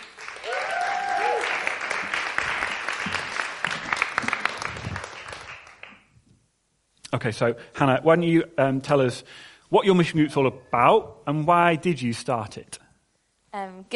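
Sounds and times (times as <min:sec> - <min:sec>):
audience applause: 0:00.0 - 0:06.0
cheers and whoops: 0:00.3 - 0:01.8
speech: 0:07.1 - 0:12.8, 0:13.5 - 0:13.9.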